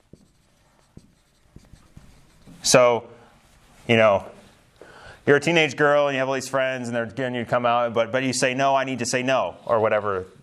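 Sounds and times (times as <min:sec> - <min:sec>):
pen scratching while writing and drawing a diagram by hand: 0:00.0 - 0:03.0
speech: 0:02.7 - 0:03.1, 0:03.9 - 0:04.4, 0:05.3 - 0:10.4.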